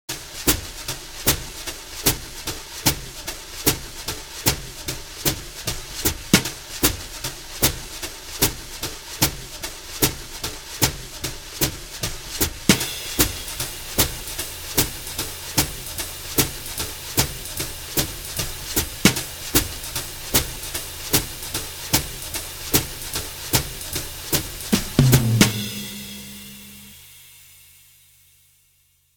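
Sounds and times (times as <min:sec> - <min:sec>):
drum brushes groove: 0:00.2 - 0:27.2.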